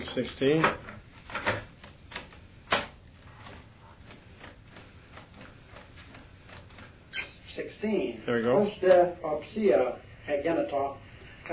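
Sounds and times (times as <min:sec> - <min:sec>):
speech: 0:00.2 - 0:00.9, 0:07.8 - 0:11.5
cassette audio tape turned over to its other side: 0:00.4 - 0:07.4.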